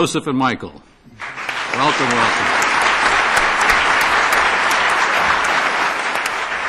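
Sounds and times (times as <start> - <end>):
speech: 0.0 - 1.0, 1.8 - 2.7
audience applause: 1.1 - 6.6.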